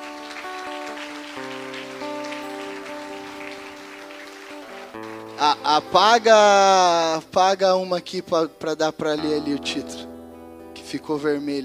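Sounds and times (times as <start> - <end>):
audience applause: 0.0 - 6.5
speech: 5.4 - 10.1, 10.9 - 11.6.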